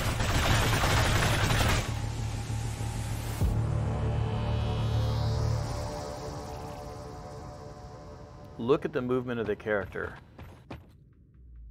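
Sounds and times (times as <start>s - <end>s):
gunfire from a gun in the video game Psyber-X: 0.0s - 2.0s
steady low hum: 0.0s - 9.4s
speech: 8.6s - 10.3s.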